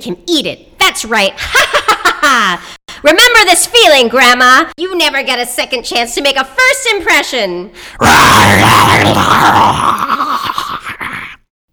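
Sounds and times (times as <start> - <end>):
speech: 0.0 - 10.4
wolf growling and snarling: 8.0 - 11.4.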